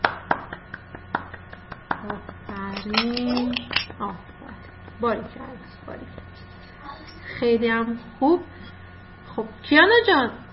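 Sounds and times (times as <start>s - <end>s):
children clapping in a class: 0.0s - 2.6s
speech: 2.0s - 4.3s, 5.0s - 6.2s, 7.4s - 8.5s, 9.7s - 10.4s.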